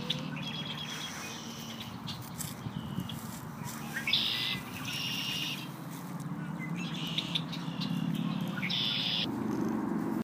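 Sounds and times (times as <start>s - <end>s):
bird singing buzzy phrases: 0.0s - 9.3s.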